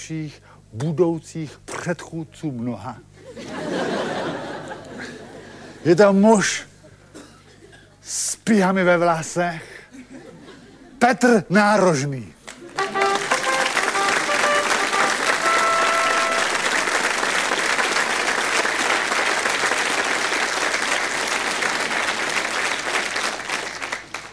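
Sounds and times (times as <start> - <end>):
speech: 0.0 - 3.5, 5.8 - 6.7, 8.1 - 9.7, 11.0 - 12.4
laughter: 3.2 - 5.9, 9.9 - 11.0, 12.6 - 15.2
audience applause: 12.5 - 24.3.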